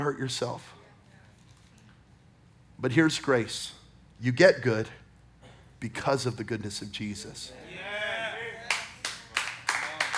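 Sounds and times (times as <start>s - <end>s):
speech: 0.1s - 0.8s, 2.8s - 5.0s, 5.8s - 7.8s
nervous clapping: 8.7s - 10.1s.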